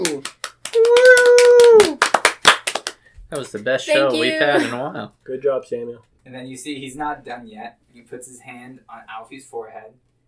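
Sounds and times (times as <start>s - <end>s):
hands clapping: 0.0s - 3.7s
speech: 3.3s - 10.0s.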